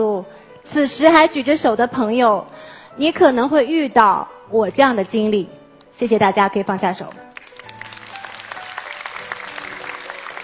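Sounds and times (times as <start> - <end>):
speech: 0.0 - 7.3
audience applause: 7.4 - 10.4.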